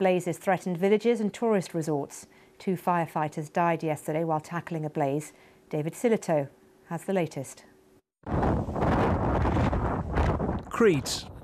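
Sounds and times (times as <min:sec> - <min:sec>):
speech: 0:00.0 - 0:08.6, 0:10.8 - 0:11.3
storm-force wind roaring over the microphone during a wildfire on Crete: 0:08.2 - 0:11.4.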